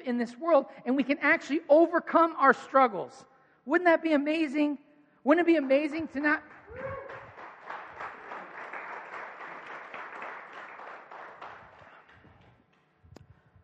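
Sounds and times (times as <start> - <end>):
speech: 0.0 - 6.9
scattered audience applause: 5.5 - 13.0.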